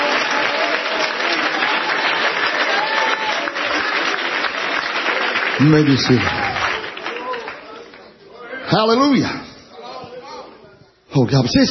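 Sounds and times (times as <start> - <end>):
audience clapping: 0.0 - 8.2
speech: 5.6 - 6.4, 8.7 - 9.5, 11.2 - 11.7.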